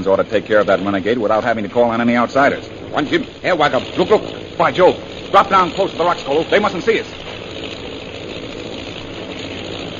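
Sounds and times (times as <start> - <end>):
speech: 0.0 - 7.2
bomber planes' engines droning overhead: 0.0 - 9.9.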